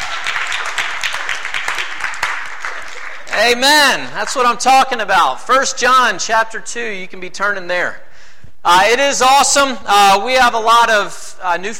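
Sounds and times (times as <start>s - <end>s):
crowd clapping: 0.0s - 4.6s
speech: 3.4s - 8.0s, 8.6s - 11.7s.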